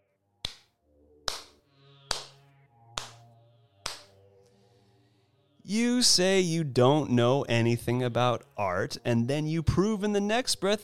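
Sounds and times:
hands clapping: 0.4s - 0.7s, 1.3s - 2.4s, 3.0s - 3.2s, 3.8s - 4.1s
speech: 5.7s - 10.8s.

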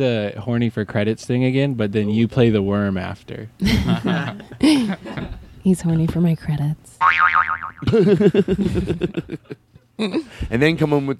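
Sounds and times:
speech: 0.0s - 11.1s
laughter: 3.6s - 5.5s, 7.8s - 10.4s
cartoon boing sound effect: 7.0s - 7.9s.

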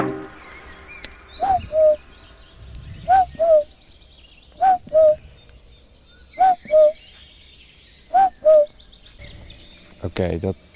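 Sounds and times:
faint bird chirps: 0.2s - 10.7s
person imitating a cuckoo call: 1.4s - 2.0s, 3.1s - 3.7s, 4.6s - 5.2s, 6.4s - 7.0s, 8.1s - 8.7s.

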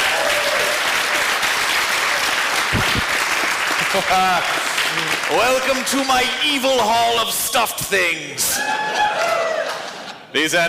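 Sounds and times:
audience applauding for a volunteer: 0.0s - 6.6s, 8.8s - 10.2s
speech: 4.0s - 9.4s, 10.3s - 10.6s.

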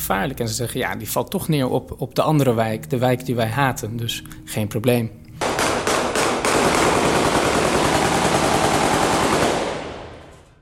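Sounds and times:
speech: 0.1s - 5.2s
heavy gunfire shot into the air at a funeral: 5.4s - 10.3s.

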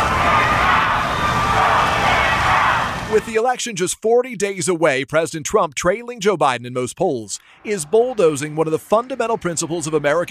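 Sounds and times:
crowd booing outside the Supreme Court: 0.0s - 3.4s, 7.5s - 10.2s
speech: 3.2s - 10.2s.

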